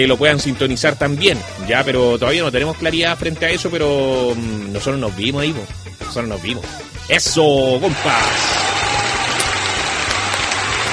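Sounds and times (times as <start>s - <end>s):
speech: 0.0s - 8.7s
crowd applauding: 7.8s - 10.9s.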